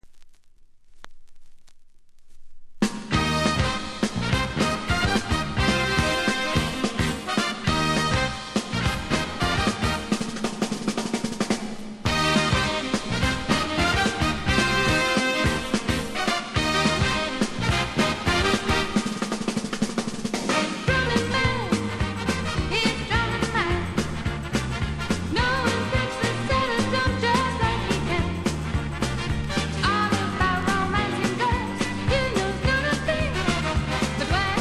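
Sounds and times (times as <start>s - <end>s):
drumming: 2.8s - 34.5s.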